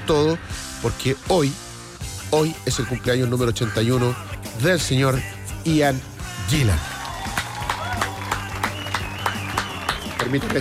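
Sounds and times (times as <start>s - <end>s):
speech: 0.1s - 1.6s, 2.3s - 6.9s, 10.3s - 10.5s
one person clapping hands: 6.8s - 10.5s.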